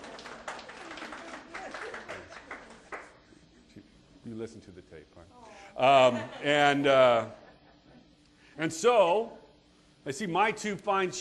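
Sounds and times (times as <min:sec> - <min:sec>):
audience applause: 0:00.0 - 0:03.2
speech: 0:04.3 - 0:07.4, 0:08.6 - 0:09.4, 0:10.0 - 0:11.2.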